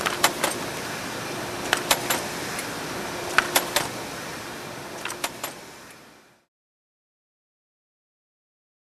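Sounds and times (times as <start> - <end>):
industrial engine clanking: 0.0 - 5.6.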